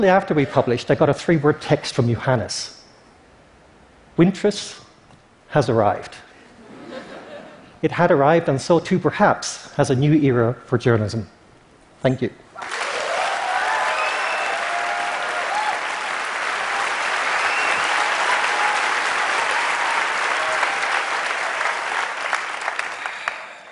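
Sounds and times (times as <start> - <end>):
speech: 0.0 - 2.8, 4.2 - 4.8, 5.5 - 6.2, 7.8 - 11.4, 12.0 - 12.7
large audience applauding: 12.6 - 23.7.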